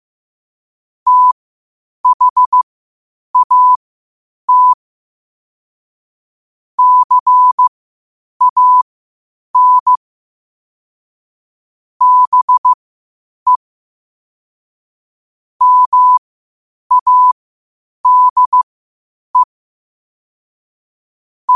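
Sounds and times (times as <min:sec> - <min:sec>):
morse code at 5 wpm: 0:01.1 - 0:01.4, 0:02.0 - 0:02.6, 0:03.4 - 0:03.8, 0:04.5 - 0:04.8, 0:06.8 - 0:07.7, 0:08.4 - 0:08.8, 0:09.6 - 0:10.0, 0:12.0 - 0:12.8, 0:15.6 - 0:16.2, 0:16.9 - 0:17.4, 0:18.0 - 0:18.6.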